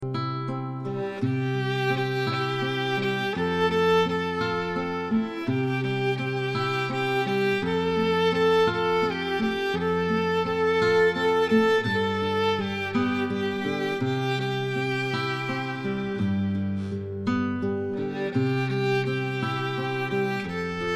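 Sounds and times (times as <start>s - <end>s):
violin playing a song: 0.9s - 20.9s.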